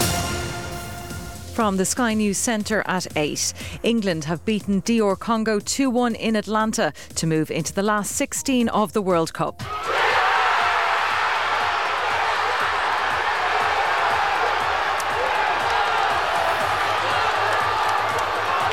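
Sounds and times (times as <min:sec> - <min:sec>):
speech: 0:01.6 - 0:09.9
football supporters in Manchester cheering and celebrating England's winning goal: 0:09.6 - 0:18.7.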